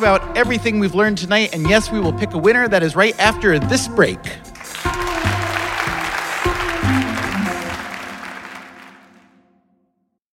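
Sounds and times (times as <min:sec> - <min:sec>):
speech: 0:00.0 - 0:04.5
live studio audience in Minneapolis applauding: 0:04.6 - 0:09.4.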